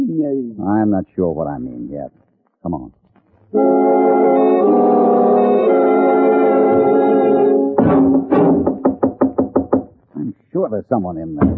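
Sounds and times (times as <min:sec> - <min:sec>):
speech: 0:00.2 - 0:05.0, 0:10.6 - 0:11.5
droning horn-like tone: 0:03.5 - 0:08.6
hard knocking on a door: 0:07.8 - 0:10.0, 0:11.4 - 0:11.5.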